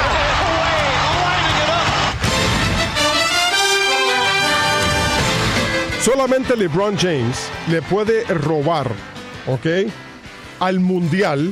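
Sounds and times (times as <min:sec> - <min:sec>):
basketball theme jingle: 0:00.1 - 0:10.3
speech: 0:06.1 - 0:10.1, 0:10.6 - 0:11.5.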